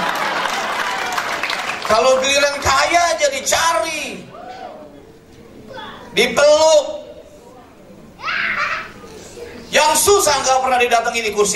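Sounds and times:
audience applause: 0:00.0 - 0:02.6
speech: 0:01.9 - 0:04.4, 0:06.2 - 0:07.0, 0:09.7 - 0:11.5.

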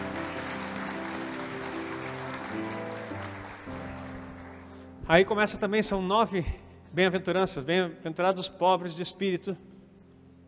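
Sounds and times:
crowd applauding: 0:00.0 - 0:05.0
speech: 0:05.1 - 0:09.7.

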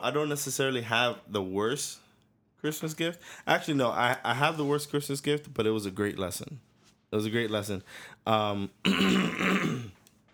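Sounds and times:
speech: 0:00.0 - 0:02.0, 0:02.6 - 0:09.9
person clearing throat: 0:08.8 - 0:10.0.

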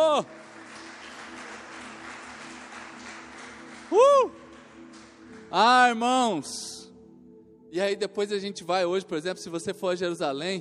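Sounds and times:
crowd clapping: 0:00.0 - 0:06.0
speech: 0:00.2 - 0:00.4, 0:05.5 - 0:06.8, 0:07.7 - 0:10.5.

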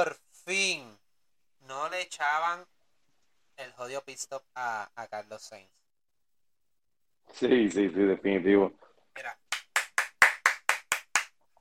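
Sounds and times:
speech: 0:00.0 - 0:00.9, 0:01.7 - 0:02.8, 0:03.6 - 0:05.8, 0:07.3 - 0:09.4
hand clapping: 0:09.4 - 0:11.5.

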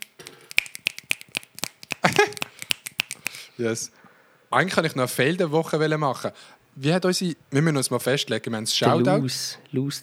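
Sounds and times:
finger snapping: 0:00.0 - 0:03.5
laughter: 0:02.0 - 0:02.7
speech: 0:03.6 - 0:10.0.

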